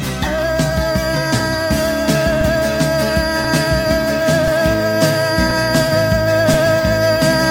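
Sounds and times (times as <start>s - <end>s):
voice going ooh: 0.2s - 7.4s.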